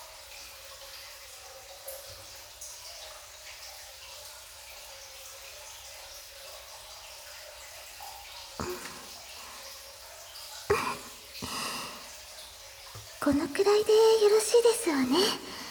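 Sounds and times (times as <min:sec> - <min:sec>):
scrubbing while washing in a bath: 0:08.6 - 0:09.7, 0:10.7 - 0:12.1, 0:13.0 - 0:15.6
speech: 0:13.2 - 0:15.6.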